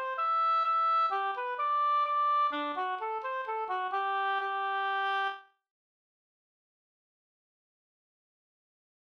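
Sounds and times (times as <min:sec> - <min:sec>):
hambo polka music: 0:00.0 - 0:05.3.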